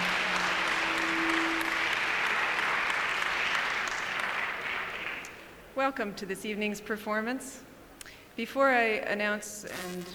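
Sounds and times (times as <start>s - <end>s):
audience applause at an evening performance: 0.0s - 5.6s
speech: 5.8s - 7.7s, 8.4s - 10.1s.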